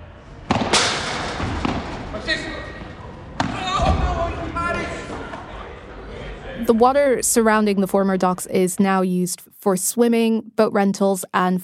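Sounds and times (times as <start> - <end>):
padel balls being hit: 0.5 - 2.1, 3.3 - 4.0
speech: 6.7 - 11.6.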